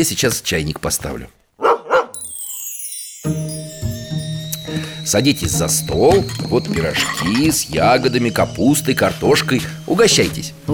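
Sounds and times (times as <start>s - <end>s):
speech: 0.0s - 1.4s, 5.1s - 10.7s
dog barking: 1.6s - 2.1s.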